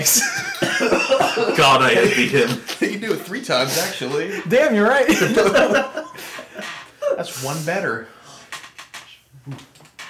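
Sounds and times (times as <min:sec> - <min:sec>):
speech: 0:00.0 - 0:00.4, 0:01.6 - 0:06.1, 0:07.2 - 0:08.2, 0:09.5 - 0:09.7
laughter: 0:00.0 - 0:07.4
squeaky chair: 0:06.4 - 0:07.0, 0:08.3 - 0:10.0.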